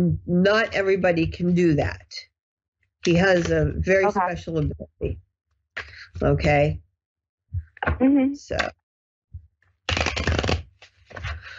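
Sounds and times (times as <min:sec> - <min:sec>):
speech: 0:00.0 - 0:02.3, 0:03.0 - 0:06.8, 0:07.5 - 0:08.8
oracle cards being shuffled: 0:09.9 - 0:11.5.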